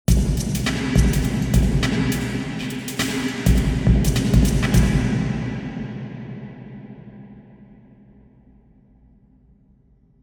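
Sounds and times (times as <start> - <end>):
sports centre drum: 0.1 - 5.9.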